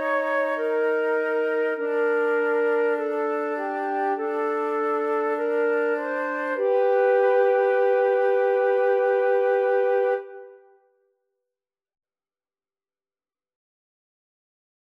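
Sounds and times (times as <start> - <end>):
flute trio playing: 0.0 - 10.7.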